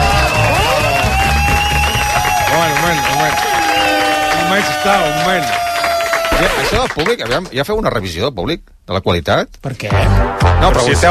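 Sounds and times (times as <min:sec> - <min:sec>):
audience applause: 0:00.0 - 0:07.6
speech: 0:04.6 - 0:05.7, 0:06.4 - 0:11.0.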